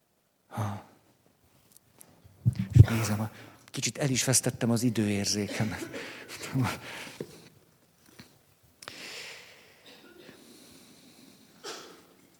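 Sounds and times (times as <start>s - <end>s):
speech: 2.9s - 7.3s
sneeze: 11.6s - 12.2s.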